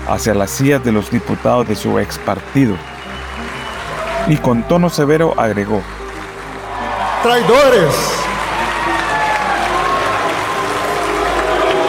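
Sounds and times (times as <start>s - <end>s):
speech: 0.1s - 2.9s, 4.3s - 6.0s, 7.2s - 8.3s
ovation in an assembly hall: 0.6s - 11.8s
scattered cheers: 2.7s - 5.4s, 6.5s - 11.8s.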